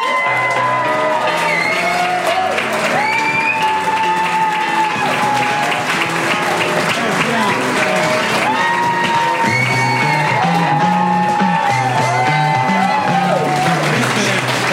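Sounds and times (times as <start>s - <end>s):
crowd whoops and shouts at a live fan convention: 0.0s - 5.8s, 8.4s - 13.8s
crowd clapping at a live fan convention: 0.0s - 14.7s.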